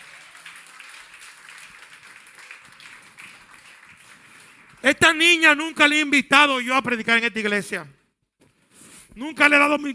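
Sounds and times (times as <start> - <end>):
audience applause: 0.0 - 4.9
speech: 4.9 - 8.0, 9.2 - 9.9.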